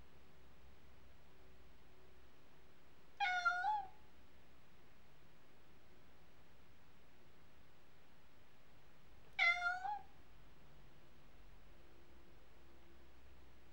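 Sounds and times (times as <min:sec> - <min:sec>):
domestic cat meowing: 0:03.2 - 0:04.0, 0:09.4 - 0:10.1.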